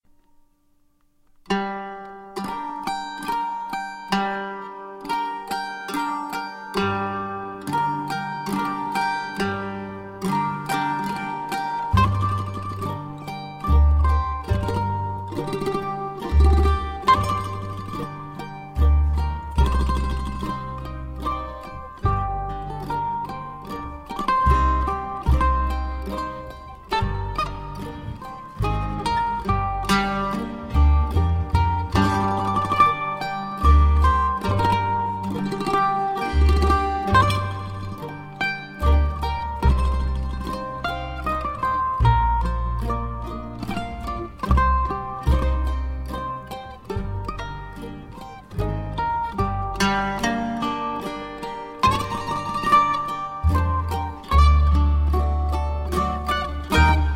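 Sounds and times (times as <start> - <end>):
klezmer mandolin waltz: 1.2 - 57.1.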